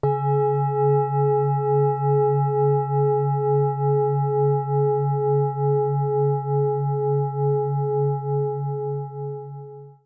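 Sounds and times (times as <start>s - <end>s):
singing bowl: 0.0s - 10.0s.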